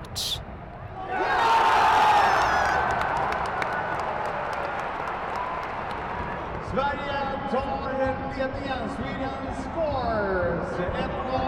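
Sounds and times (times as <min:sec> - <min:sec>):
speech: 0:00.2 - 0:00.4, 0:08.4 - 0:11.4
stadium crowd cheering: 0:00.9 - 0:07.6
crowd shouts: 0:01.0 - 0:03.3
crowd clapping: 0:02.6 - 0:06.6.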